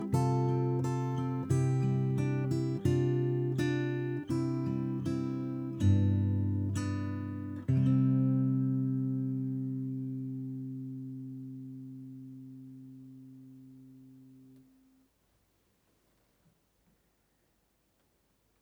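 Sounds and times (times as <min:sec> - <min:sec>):
guitar melody: 0:00.0 - 0:14.6.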